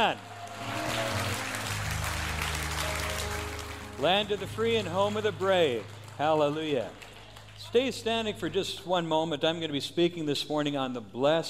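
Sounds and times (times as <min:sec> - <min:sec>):
speech: 0:00.0 - 0:00.7, 0:04.0 - 0:07.0, 0:07.6 - 0:11.4
audience clapping hands: 0:00.0 - 0:08.9.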